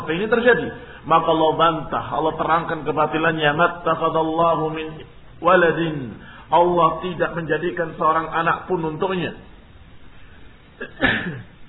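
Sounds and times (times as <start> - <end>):
speech: 0.1 - 9.5, 10.8 - 11.5
sneeze: 10.8 - 11.6.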